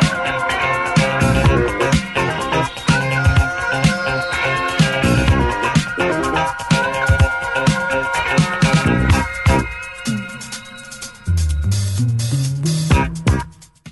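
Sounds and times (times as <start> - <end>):
space drums: 0.0 - 13.8.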